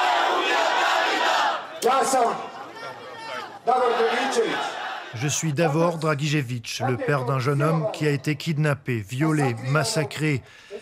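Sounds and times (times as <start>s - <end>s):
crowd shouting in protest: 0.0s - 5.9s
speech: 1.8s - 2.5s, 3.6s - 10.8s.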